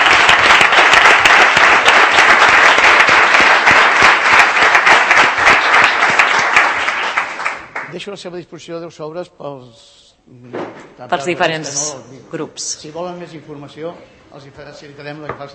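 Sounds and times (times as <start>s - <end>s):
audience applause: 0.0s - 8.0s
speech: 8.0s - 15.5s.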